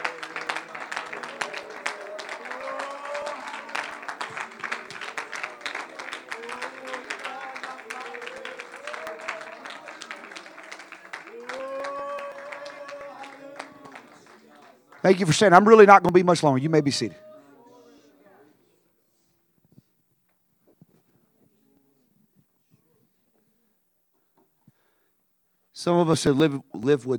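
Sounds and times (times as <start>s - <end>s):
audience clapping: 0.0s - 16.5s
voices calling and singing: 0.9s - 14.8s, 15.5s - 18.6s
speech: 15.0s - 17.2s, 25.8s - 27.1s.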